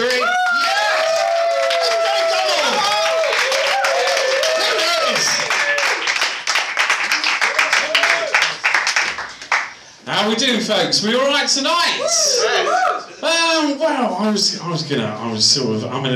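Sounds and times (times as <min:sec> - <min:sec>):
comedy show audience whooping and cheering: 0:00.0 - 0:06.3, 0:07.1 - 0:08.6, 0:12.0 - 0:13.1
comedy show audience clapping to welcome a comedian: 0:00.0 - 0:09.9
speech: 0:10.4 - 0:16.1.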